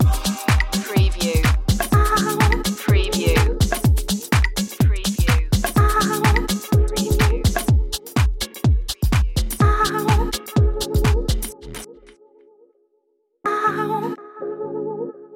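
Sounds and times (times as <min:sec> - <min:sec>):
funky loop: 0:00.0 - 0:11.9.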